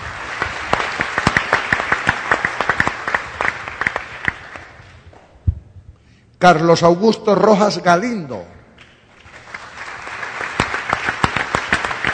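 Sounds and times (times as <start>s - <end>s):
audience applause: 0.0s - 4.8s, 9.2s - 12.1s
speech: 6.4s - 8.6s.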